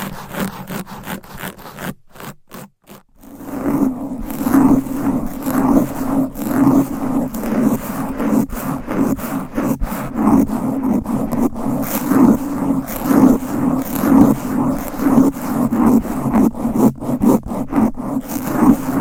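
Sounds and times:
fast aggressive scratching against a microphone: 0:00.0 - 0:18.9.

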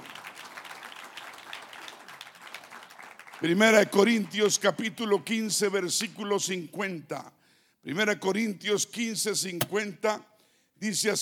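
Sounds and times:
audience applauding: 0:00.0 - 0:03.4
speech: 0:03.4 - 0:11.1.

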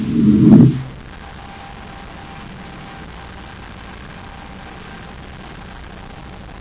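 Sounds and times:
Terra 5 spaceship landing on the moon: 0:00.0 - 0:00.9.

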